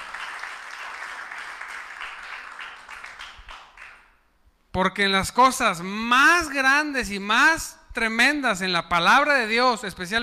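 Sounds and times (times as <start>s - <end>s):
audience applauding: 0.0s - 4.1s
speech: 4.8s - 10.2s.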